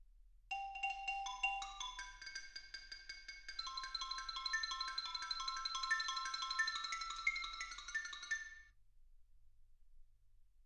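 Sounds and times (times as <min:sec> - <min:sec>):
xylophone: 0:00.5 - 0:08.7.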